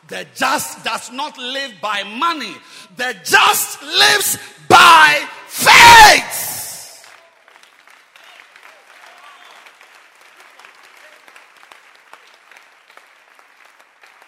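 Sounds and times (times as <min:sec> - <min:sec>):
speech: 0:00.0 - 0:06.5
audience applauding: 0:07.0 - 0:14.2.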